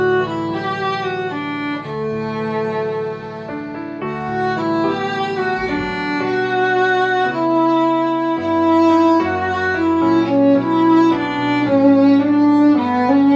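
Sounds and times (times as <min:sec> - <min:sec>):
beginner violin: 0:00.0 - 0:13.3
piano: 0:00.0 - 0:13.3.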